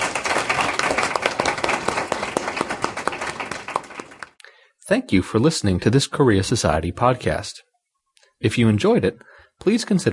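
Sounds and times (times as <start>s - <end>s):
audience applause: 0.0s - 4.4s
speech: 4.9s - 7.7s, 8.4s - 10.1s.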